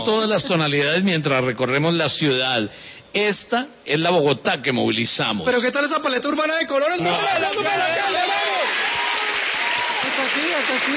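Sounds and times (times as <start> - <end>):
speech: 0.0 - 8.8, 10.1 - 10.9
audience applause: 7.7 - 10.9.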